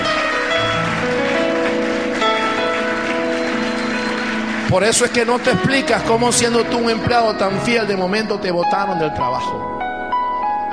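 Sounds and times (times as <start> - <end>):
audience applauding: 0.0 - 8.2
speech: 4.7 - 9.7.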